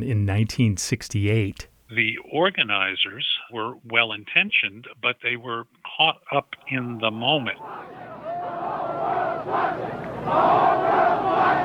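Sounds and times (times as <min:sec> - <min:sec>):
speech: 0:00.0 - 0:08.0, 0:09.4 - 0:11.6
large protest crowd chanting: 0:07.5 - 0:11.6.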